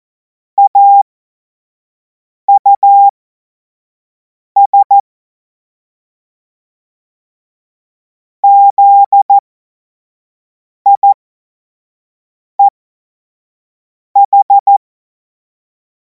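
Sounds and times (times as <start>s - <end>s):
CW Morse code beeps: 0.6s - 1.0s, 2.5s - 3.1s, 4.6s - 5.0s, 8.4s - 9.4s, 10.9s - 11.2s, 14.2s - 14.8s.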